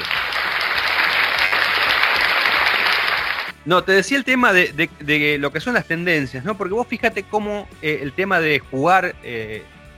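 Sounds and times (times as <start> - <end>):
applause: 0.0 - 3.6
speech: 3.7 - 9.8.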